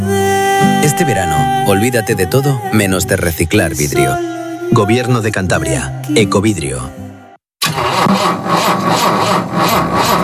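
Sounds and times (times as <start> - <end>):
speech: 0.8 - 7.0
car engine starting and idling: 7.6 - 10.2.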